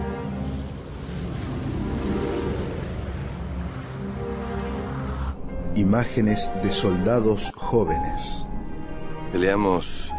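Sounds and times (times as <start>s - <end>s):
warplanes flying overhead: 0.0s - 7.2s
speech: 5.8s - 8.5s, 9.3s - 10.1s.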